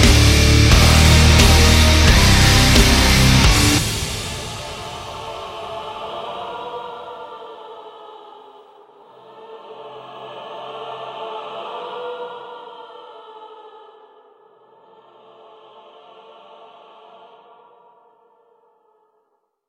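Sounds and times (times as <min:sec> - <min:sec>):
instrumental music: 0:00.0 - 0:04.1.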